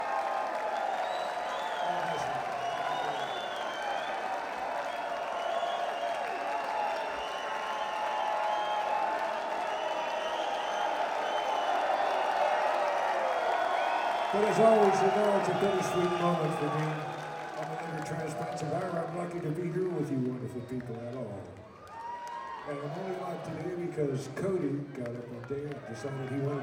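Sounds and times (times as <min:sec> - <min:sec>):
whoops: 0:00.0 - 0:18.7, 0:21.6 - 0:23.7
large live audience applauding and cheering: 0:00.0 - 0:26.6
speech: 0:14.4 - 0:17.1, 0:18.1 - 0:21.7, 0:22.6 - 0:26.6.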